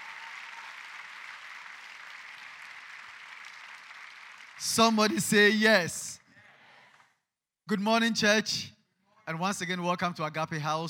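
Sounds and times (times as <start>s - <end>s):
audience clapping: 0.0s - 5.6s
speech: 4.6s - 6.0s, 7.7s - 10.8s.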